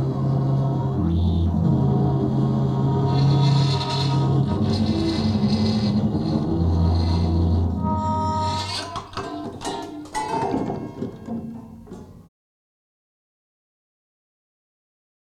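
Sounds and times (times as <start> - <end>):
19-string violin with electronics: 0.0 - 12.0.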